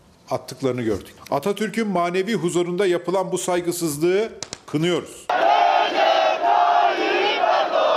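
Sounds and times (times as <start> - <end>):
speech: 0.3 - 5.5
crowd chanting slogans in Anıtkabir courtyard: 5.3 - 7.9.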